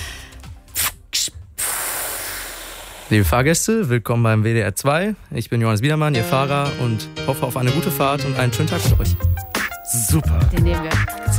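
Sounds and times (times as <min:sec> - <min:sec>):
voice imitating bus lowering hiss: 0:00.0 - 0:03.1
speech: 0:03.1 - 0:11.3.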